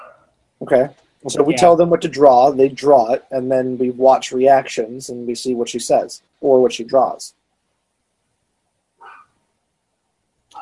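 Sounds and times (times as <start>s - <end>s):
speech: 0.6s - 7.4s
faint dog barking: 9.0s - 9.4s.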